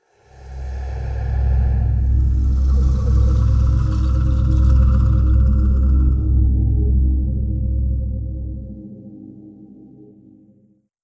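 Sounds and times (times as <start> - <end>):
whoosh: 0.0 - 6.5
music: 0.2 - 11.0.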